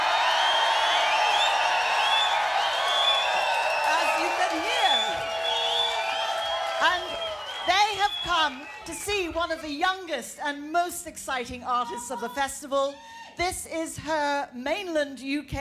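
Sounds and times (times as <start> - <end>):
scattered claps: 0.0 - 9.3
high whoops and shouts: 0.0 - 9.4
large festival crowd cheering outdoors: 0.0 - 9.8
speech: 8.2 - 15.6.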